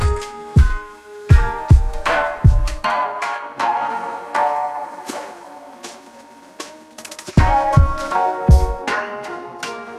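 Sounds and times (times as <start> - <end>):
Japanese koto lofi music: 0.0 - 9.9.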